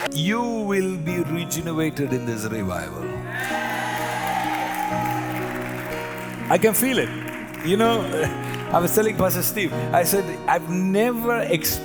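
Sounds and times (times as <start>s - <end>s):
speech: 0.1s - 3.6s, 6.5s - 11.8s
audience clapping hands: 3.4s - 9.4s.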